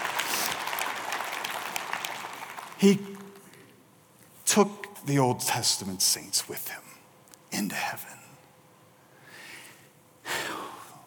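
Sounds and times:
audience applause: 0.0s - 3.4s
speech: 2.8s - 3.1s, 4.5s - 6.9s, 7.5s - 8.2s.

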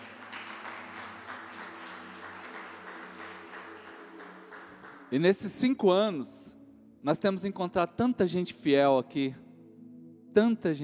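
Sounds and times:
audience applause: 0.0s - 5.2s
speech: 5.1s - 9.4s, 10.3s - 10.8s.

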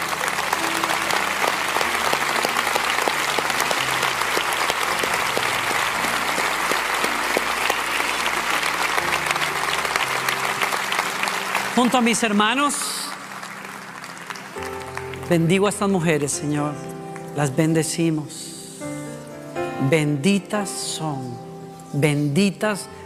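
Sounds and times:
audience applause: 0.0s - 15.3s
speech: 11.8s - 13.0s, 15.3s - 18.4s, 19.8s - 23.0s.

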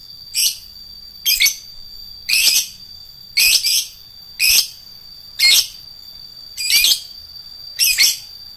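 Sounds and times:
lovebird song: 0.3s - 2.8s, 3.4s - 4.8s, 5.4s - 5.8s, 6.6s - 7.2s, 7.8s - 8.4s.

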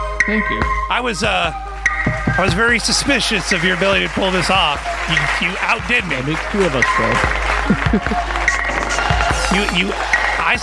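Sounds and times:
speech: 0.2s - 1.7s, 2.3s - 8.4s, 9.5s - 10.6s
applause sound effect: 1.7s - 10.6s
laughter: 2.5s - 10.6s
faint voice murmuring: 7.7s - 8.4s.

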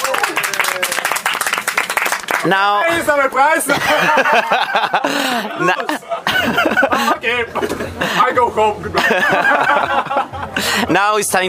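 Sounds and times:
applause: 0.0s - 2.5s
speech: 2.4s - 11.4s
laughter: 3.0s - 10.9s.

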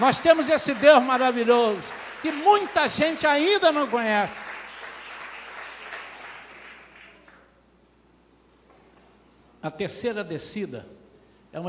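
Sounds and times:
speech: 0.0s - 4.5s, 9.6s - 11.6s
audience applause: 0.0s - 7.4s.

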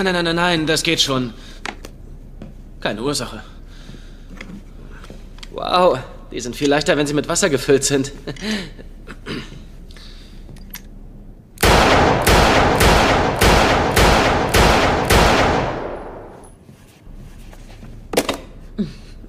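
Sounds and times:
speech: 0.0s - 1.5s, 2.8s - 3.5s, 5.6s - 9.6s
gunshots at a target: 11.6s - 16.5s.

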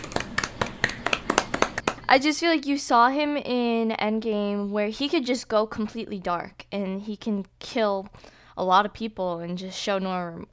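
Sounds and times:
one or two people clapping: 0.0s - 2.1s
speech: 2.1s - 10.5s.

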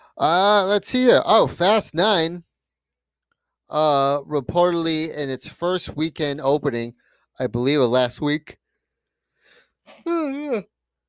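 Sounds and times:
speech: 0.2s - 2.5s, 3.7s - 8.6s, 9.9s - 10.7s
person yawning: 9.9s - 10.6s.

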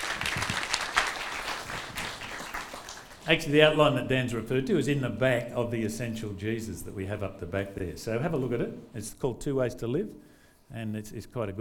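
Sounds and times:
audience clapping: 0.0s - 3.6s
speech: 3.3s - 11.5s.

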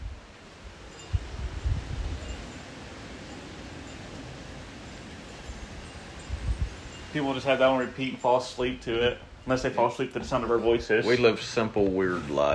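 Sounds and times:
wind buffeting a microphone: 0.0s - 11.0s
speech: 7.2s - 12.5s.

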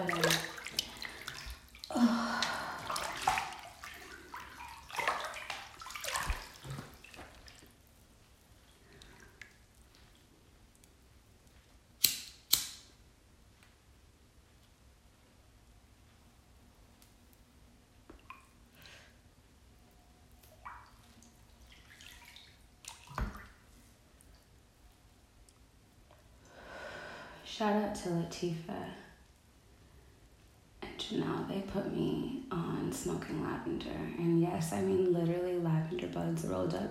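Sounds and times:
running tap water splashing while rinsing a face mask: 0.0s - 8.0s, 20.6s - 23.6s
speech: 27.6s - 29.0s, 31.1s - 36.8s.

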